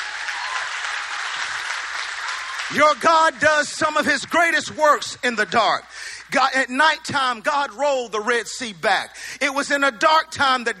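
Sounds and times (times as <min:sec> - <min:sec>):
audience clapping hands: 0:00.0 - 0:06.3
speech: 0:02.7 - 0:10.7.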